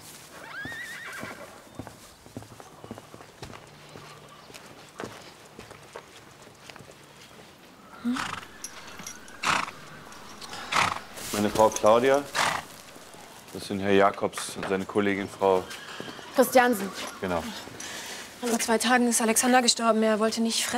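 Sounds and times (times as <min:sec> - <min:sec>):
hooves clopping and shuffling: 0:00.0 - 0:20.7
horse neighing: 0:00.4 - 0:01.5, 0:07.8 - 0:13.4, 0:15.1 - 0:17.8
speech: 0:08.1 - 0:08.4, 0:11.5 - 0:12.4, 0:13.6 - 0:17.8, 0:18.4 - 0:20.7.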